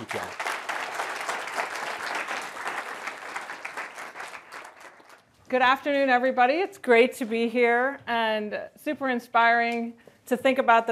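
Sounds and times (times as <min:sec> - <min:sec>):
audience applause: 0:00.0 - 0:05.3
speech: 0:05.5 - 0:10.9.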